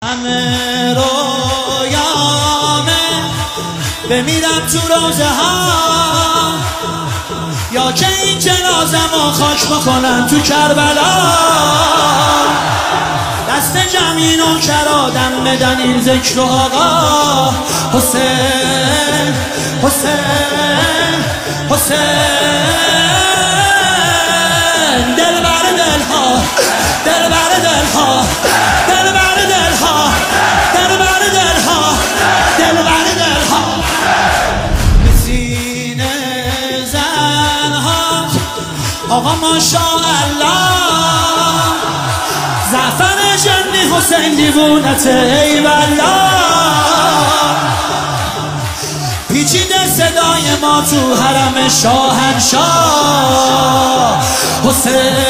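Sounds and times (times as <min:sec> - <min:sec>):
devotional singing: 0:00.0 - 0:55.2.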